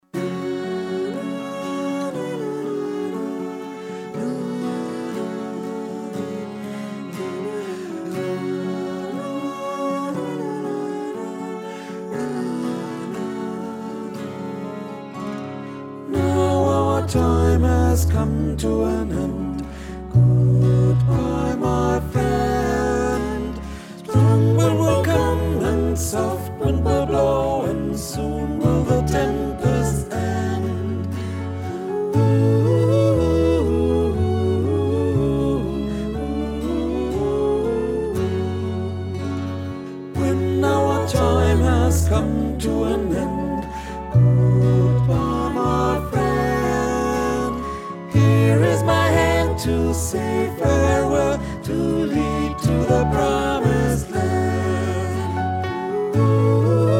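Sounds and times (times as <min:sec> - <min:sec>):
tenor singing: 0:00.0 - 0:56.9.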